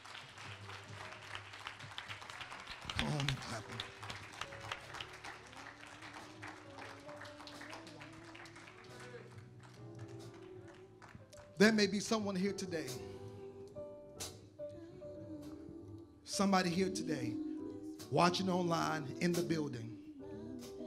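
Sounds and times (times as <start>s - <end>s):
audience clapping hands: 0.0s - 12.0s
speech: 3.5s - 4.0s, 11.6s - 13.2s, 16.4s - 17.4s, 18.1s - 19.9s.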